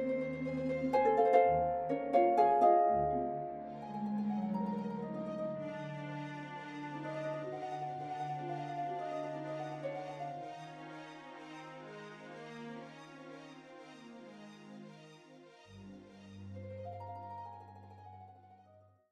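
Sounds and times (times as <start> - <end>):
harp and strings concerto: 0.0 - 18.8.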